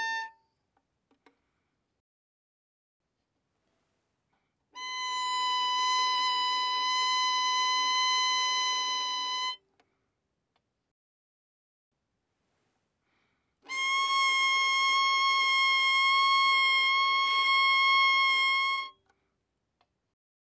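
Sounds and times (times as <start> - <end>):
violin arco fortissimo on the A string: 0.0 - 0.4, 4.8 - 9.6, 13.7 - 19.0.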